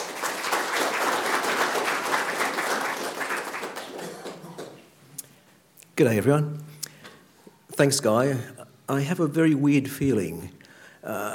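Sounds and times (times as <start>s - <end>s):
audience applause welcoming a speaker: 0.0s - 4.9s
speech: 6.0s - 6.7s, 7.8s - 11.3s.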